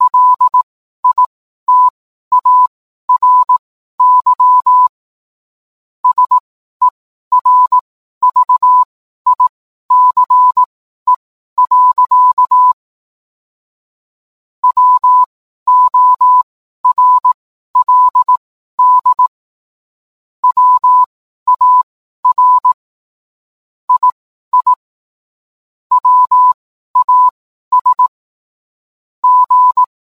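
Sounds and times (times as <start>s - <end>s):
morse code beeps: 0.0s - 4.9s, 6.0s - 12.8s, 14.6s - 19.3s, 20.4s - 22.8s, 23.9s - 24.8s, 25.9s - 28.1s, 29.2s - 29.9s.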